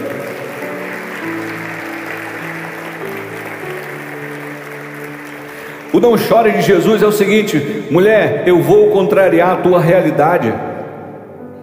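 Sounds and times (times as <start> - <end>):
crowd applauding: 0.0 - 7.9
held keyboard chords: 0.0 - 11.6
speech: 5.9 - 10.7.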